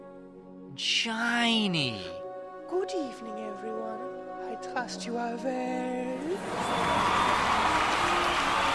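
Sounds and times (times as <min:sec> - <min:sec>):
speech: 0:00.8 - 0:02.2, 0:02.8 - 0:07.8
lively crowd applauding at an evening event: 0:06.3 - 0:08.7.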